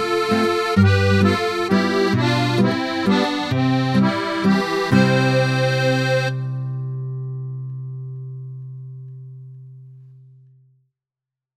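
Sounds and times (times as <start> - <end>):
waltz music: 0.0 - 7.7.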